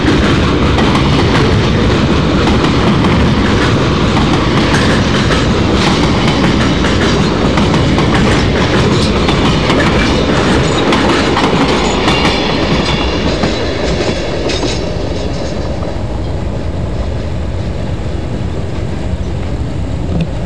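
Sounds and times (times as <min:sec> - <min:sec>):
train passing: 0:00.0 - 0:20.4.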